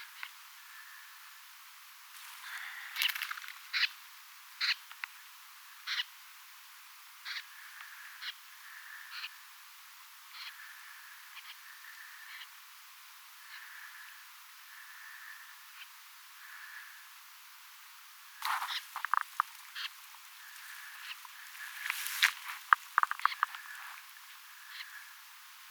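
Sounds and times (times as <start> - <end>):
hiss: 0.0 - 25.7
snipe rasping calls: 18.4 - 25.2.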